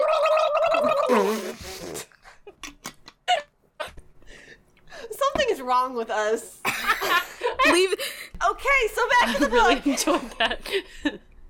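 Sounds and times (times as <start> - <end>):
person gargling water: 0.0 - 2.0
speech: 1.1 - 1.6, 5.7 - 11.2.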